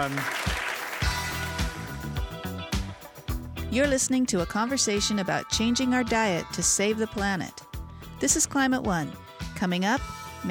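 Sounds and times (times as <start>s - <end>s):
speech: 0.0s - 0.5s, 3.7s - 7.6s, 8.2s - 10.4s
audience applause: 0.0s - 1.2s
rhythmic bass-heavy music cue: 0.0s - 10.4s.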